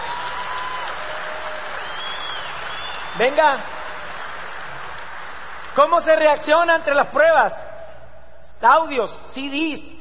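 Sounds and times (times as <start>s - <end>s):
audience applause: 0.0s - 6.6s
speech: 3.2s - 3.8s, 5.8s - 7.6s, 8.6s - 9.9s.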